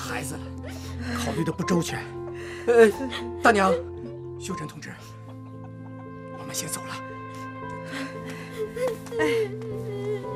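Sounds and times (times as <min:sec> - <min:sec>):
speech: 0:00.1 - 0:05.2, 0:06.5 - 0:07.1, 0:07.9 - 0:10.1
small child crying and whimpering: 0:08.6 - 0:10.3.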